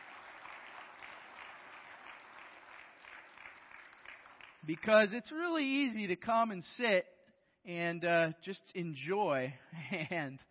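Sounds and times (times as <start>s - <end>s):
audience applause: 0.0s - 4.6s
speech: 4.6s - 10.4s.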